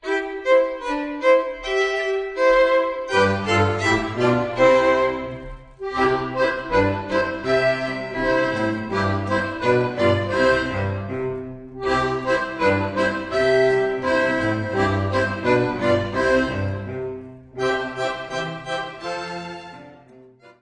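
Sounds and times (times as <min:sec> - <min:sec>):
Austrian polka music: 0:00.0 - 0:20.6.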